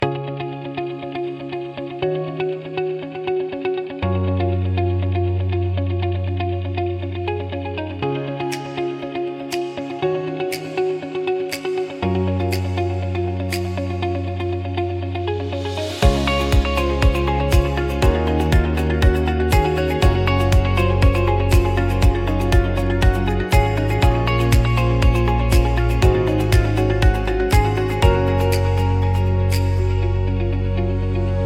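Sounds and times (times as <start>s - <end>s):
motivational corporate music: 0.0s - 31.4s.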